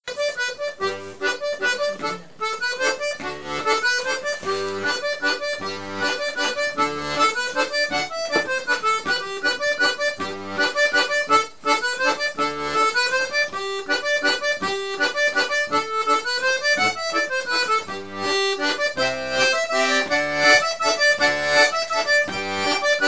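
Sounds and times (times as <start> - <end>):
mazurka: 0.1 - 23.0.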